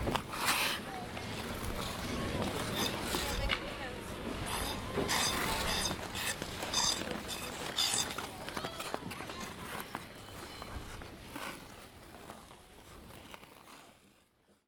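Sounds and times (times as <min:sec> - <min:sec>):
ice skating in winter in Toronto Canada: 0:00.0 - 0:14.6.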